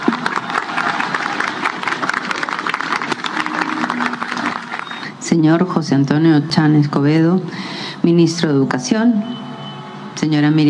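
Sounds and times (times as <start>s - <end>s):
applause: 0.0s - 5.2s
speech: 5.3s - 9.4s, 10.2s - 10.6s.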